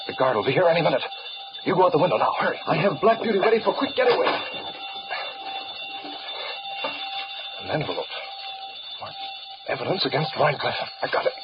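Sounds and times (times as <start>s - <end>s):
burglar alarm wired to a safe ringing: 0.0s - 11.4s
speech: 0.1s - 4.8s, 7.7s - 8.0s, 9.8s - 11.4s.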